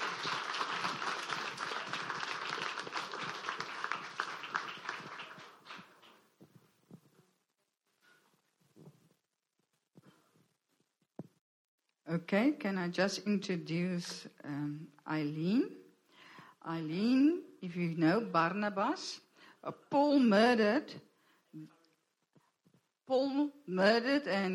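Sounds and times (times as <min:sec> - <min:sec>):
audience applause welcoming a guest speaker: 0:00.0 - 0:06.2
speech: 0:12.1 - 0:15.8, 0:16.6 - 0:21.8, 0:23.1 - 0:24.5.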